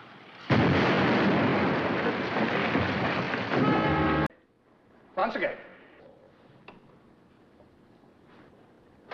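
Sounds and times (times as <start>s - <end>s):
explosion in water beside a wall: 0.5s - 3.8s
speech: 5.2s - 5.7s.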